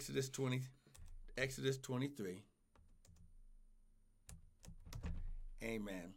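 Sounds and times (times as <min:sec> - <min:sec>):
speech: 0:00.0 - 0:00.8, 0:01.4 - 0:02.5, 0:05.6 - 0:06.1
faint typing on a computer keyboard: 0:02.8 - 0:03.3, 0:04.3 - 0:05.2.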